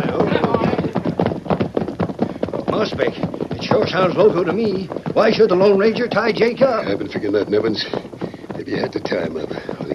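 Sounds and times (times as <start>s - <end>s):
horse hooves clip-clopping: 0.0s - 9.9s
speech: 2.9s - 8.0s, 8.7s - 9.8s.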